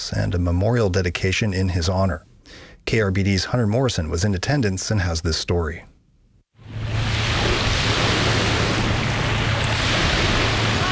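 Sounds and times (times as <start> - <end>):
speech: 0.1 - 5.9
distant waves crashing on shore: 6.6 - 10.8.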